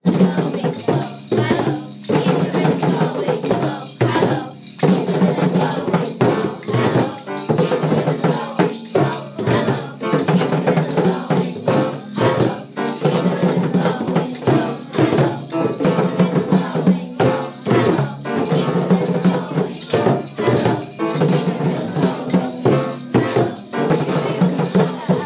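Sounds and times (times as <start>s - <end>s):
drumming: 0.0s - 25.2s.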